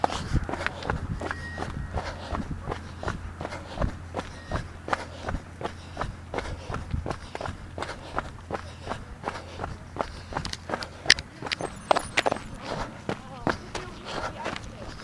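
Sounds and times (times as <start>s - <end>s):
footsteps of a person walking: 0.0s - 15.0s
low constant hum: 0.0s - 15.0s.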